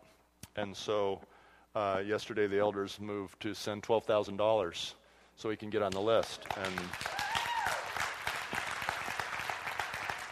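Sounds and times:
speech: 0:00.6 - 0:07.2
audience in church clapping: 0:05.9 - 0:10.3.

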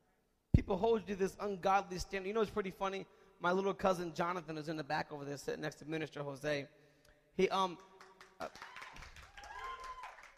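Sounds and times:
speech: 0:00.7 - 0:06.8, 0:07.4 - 0:08.7
audience clapping: 0:07.8 - 0:10.3.

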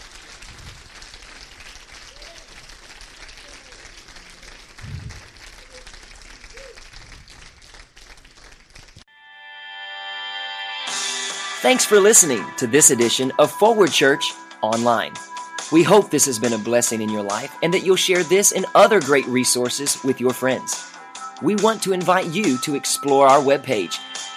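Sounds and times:
audience hand clapping: 0:00.0 - 0:09.1
speech: 0:11.6 - 0:24.1.

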